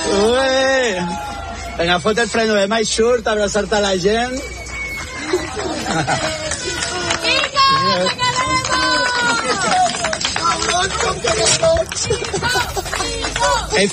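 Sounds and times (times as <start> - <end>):
raised shouts: 0.0 - 1.9, 6.4 - 10.0
crowd of neighbours cheering and calling out at a farewell: 0.0 - 13.9
speech: 0.1 - 1.2, 1.8 - 4.6, 5.3 - 6.5, 7.8 - 8.2, 11.3 - 12.5, 13.7 - 13.9
laughter: 5.1 - 13.9.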